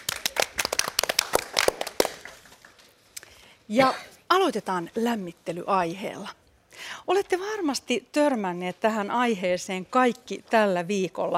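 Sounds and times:
audience applause: 0:00.0 - 0:02.5
speech: 0:03.7 - 0:06.4, 0:07.1 - 0:11.3.

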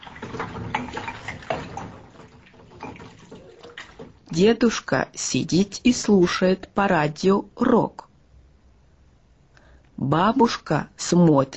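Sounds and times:
washing dishes: 0:00.0 - 0:04.9
speech: 0:04.3 - 0:08.0, 0:10.0 - 0:11.5.

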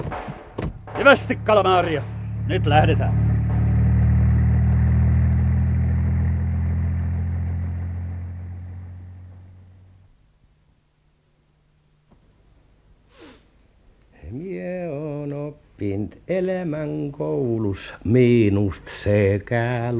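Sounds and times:
helicopter engine: 0:00.0 - 0:09.8
speech: 0:01.0 - 0:03.3, 0:15.5 - 0:19.9.

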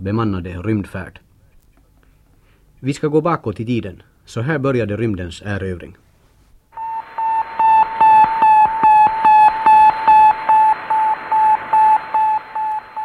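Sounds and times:
speech: 0:00.0 - 0:01.2, 0:02.8 - 0:06.1
radio beeps from Sputnik 1, Soviet satellite launched in 1957: 0:06.8 - 0:13.0.

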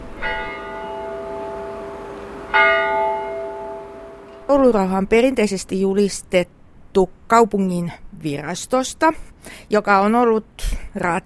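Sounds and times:
large cathedral church bell strikes: 0:00.0 - 0:04.5
speech: 0:04.5 - 0:11.2.

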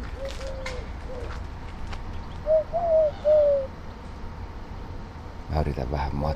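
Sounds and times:
Eurasian collared dove cooing: 0:00.0 - 0:01.5, 0:02.3 - 0:03.8
speech: 0:05.6 - 0:06.3.

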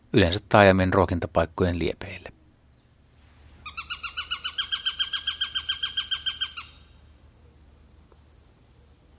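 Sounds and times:
speech: 0:00.1 - 0:02.3
Eurasian sparrowhawk chattering call: 0:03.6 - 0:06.9.

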